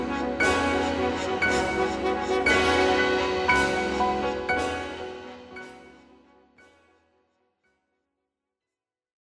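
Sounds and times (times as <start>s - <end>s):
cymbals: 0.0s - 6.2s
horns: 0.0s - 6.3s
pianos: 0.0s - 7.0s.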